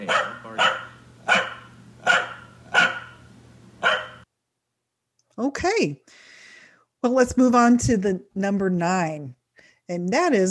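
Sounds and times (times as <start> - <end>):
Corgi dog barking: 0.0 - 4.2
speech: 5.4 - 6.2, 7.0 - 10.4.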